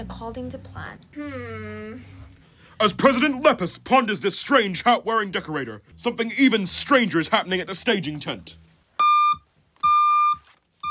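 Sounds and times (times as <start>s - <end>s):
speech: 0.0s - 2.2s, 2.8s - 8.7s
vehicle reversing warning beeps: 9.0s - 10.9s.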